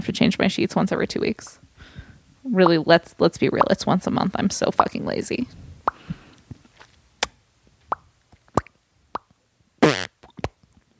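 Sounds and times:
speech: 0:00.0 - 0:01.6, 0:02.4 - 0:05.7
fake fart noises made with mouth into microphone: 0:09.8 - 0:10.9.

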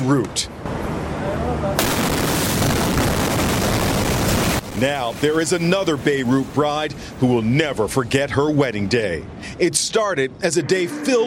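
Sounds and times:
speech: 0:00.1 - 0:00.8, 0:04.8 - 0:11.2
explosion in Beirut during a wedding ceremony: 0:01.8 - 0:05.3.

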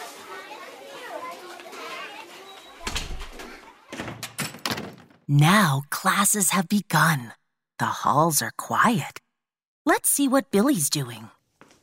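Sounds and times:
children chattering and shouting in a crowded school hallway: 0:00.0 - 0:04.4
doors or lockers slamming in a school hallway: 0:02.6 - 0:05.3
speech: 0:05.3 - 0:09.2, 0:09.8 - 0:11.4.

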